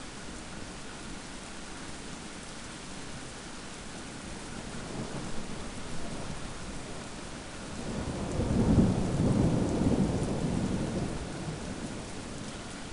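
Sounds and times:
thunder: 7.8s - 12.1s.

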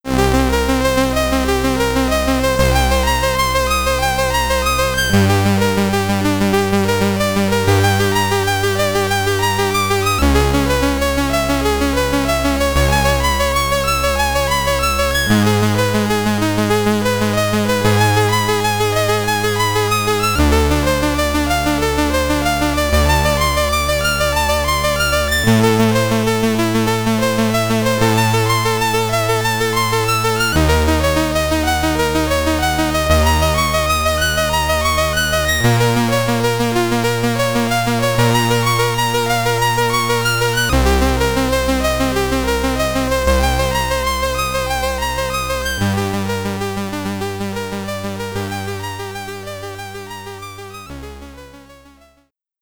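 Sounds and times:
SID stereo chiptune battle music: 0.1s - 52.2s.

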